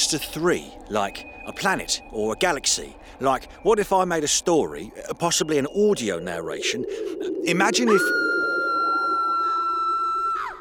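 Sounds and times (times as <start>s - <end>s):
speech: 0.1s - 8.3s
wild full-throated scream: 7.9s - 10.5s.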